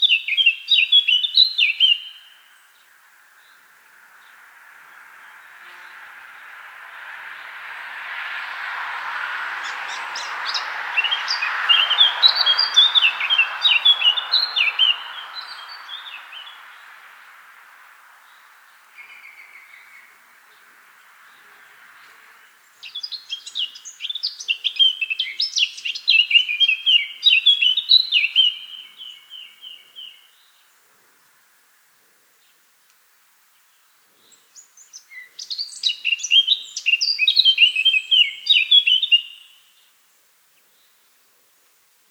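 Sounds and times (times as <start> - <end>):
Eurasian blackcap song: 0.0 - 30.7, 32.4 - 40.0
background hiss: 0.0 - 42.0.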